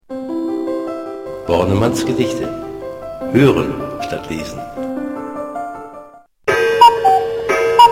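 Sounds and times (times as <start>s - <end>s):
speech: 1.5s - 2.6s, 3.3s - 4.9s
cuckoo clock calling: 6.5s - 7.9s
dense ringing mechanical background: 6.5s - 7.9s.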